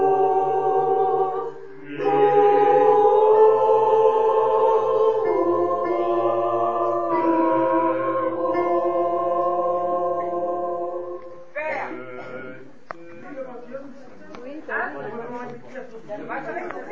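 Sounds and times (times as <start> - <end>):
full ensemble playing: 0.0 - 11.5.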